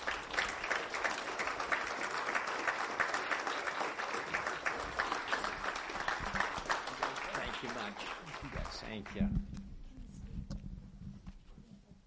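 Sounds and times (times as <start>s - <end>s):
church audience applause welcoming speakers onto the stage: 0.0s - 9.2s
speech: 8.9s - 9.6s.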